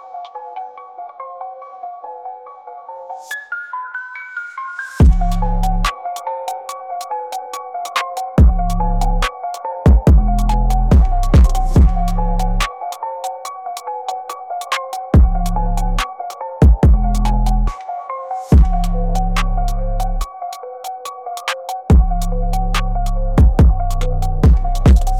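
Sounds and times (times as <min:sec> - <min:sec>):
drill beat: 0:05.0 - 0:06.7, 0:07.8 - 0:09.3, 0:09.9 - 0:13.5, 0:14.2 - 0:17.7, 0:18.6 - 0:20.3, 0:21.4 - 0:25.1.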